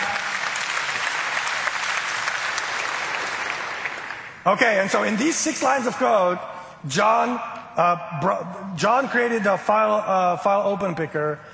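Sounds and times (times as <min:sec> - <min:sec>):
audience applause: 0:00.0 - 0:04.4
speech: 0:04.4 - 0:11.5.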